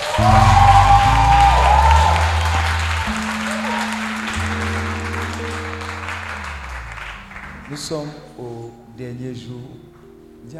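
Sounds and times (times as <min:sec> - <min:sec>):
church congregation applauding and cheering: 0:00.0 - 0:08.4
sustained musical tones: 0:00.0 - 0:10.5
speech: 0:00.2 - 0:00.6, 0:07.8 - 0:10.5.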